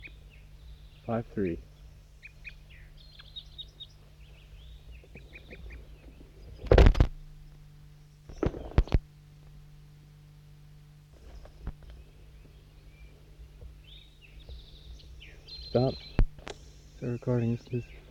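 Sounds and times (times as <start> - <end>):
crossbill calls: 0.0 - 6.8, 11.2 - 18.0
speech: 1.1 - 1.7, 17.2 - 18.0.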